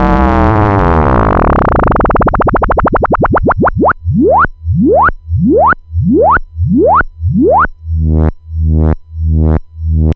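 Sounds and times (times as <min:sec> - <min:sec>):
pulse-width triangle wave synth: 0:00.5 - 0:10.1.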